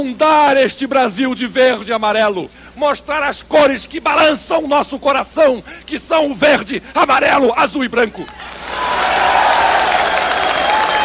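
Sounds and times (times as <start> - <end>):
speech: 0.0 - 8.5
crowd applause: 8.2 - 11.0
faint cheering: 8.2 - 11.0.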